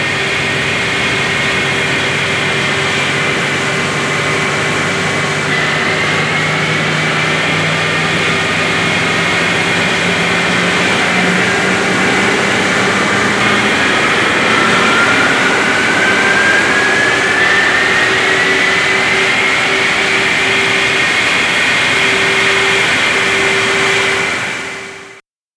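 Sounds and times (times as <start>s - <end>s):
Concorde Rolls-Royce Olympus 593 jet engine: 0.0s - 25.2s.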